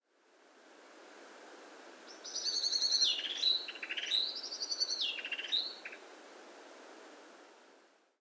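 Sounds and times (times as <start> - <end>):
Common blackbird singing: 2.2 - 5.8.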